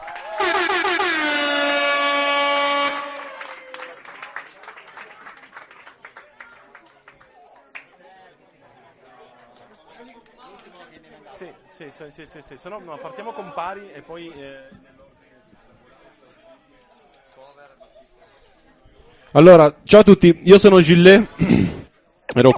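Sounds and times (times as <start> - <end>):
audience applause: 0.0 - 1.6, 2.2 - 7.9
speech: 11.8 - 14.9, 19.3 - 21.8, 22.4 - 22.5.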